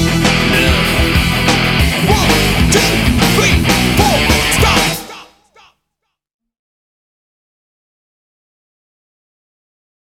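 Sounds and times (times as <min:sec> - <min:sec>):
reggae music: 0:00.0 - 0:05.5.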